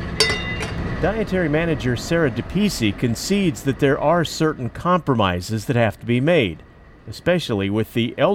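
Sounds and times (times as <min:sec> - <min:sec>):
cook stirring beef and noodles in a large boiling stock pot: 0:00.2 - 0:00.8
speech: 0:01.0 - 0:08.3.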